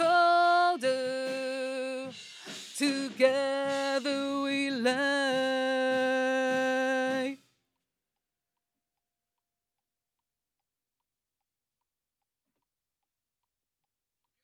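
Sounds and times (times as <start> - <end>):
vocals: 0.0 - 7.5.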